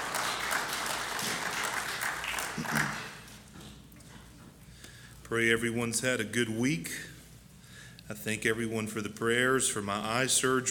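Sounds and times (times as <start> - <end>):
audience clapping hands: 0.0 - 3.4
speech: 5.3 - 7.1, 8.1 - 10.6.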